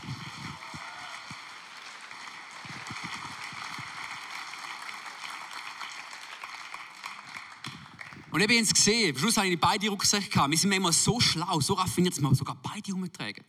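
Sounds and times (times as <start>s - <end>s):
audience applause: 0.0s - 9.5s
speech: 8.4s - 13.4s.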